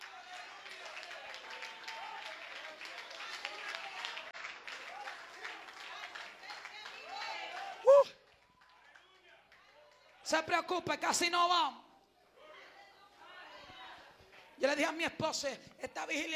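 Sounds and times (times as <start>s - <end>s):
audience applauding: 0.0s - 10.2s
speech: 10.3s - 11.8s, 14.7s - 16.3s.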